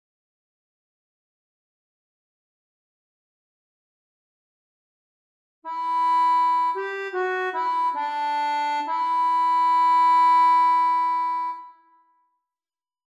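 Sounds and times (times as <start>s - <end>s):
accordion: 5.7s - 12.0s.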